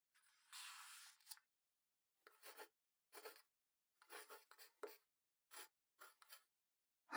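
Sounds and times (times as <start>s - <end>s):
ear cleaning ASMR: 0.5s - 1.4s, 2.3s - 3.4s, 4.0s - 6.4s.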